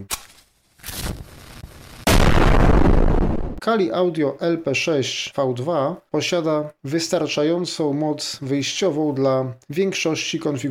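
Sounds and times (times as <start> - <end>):
explosion sound effect with roaring low-end noise: 0.9 - 3.6
speech: 3.6 - 10.6.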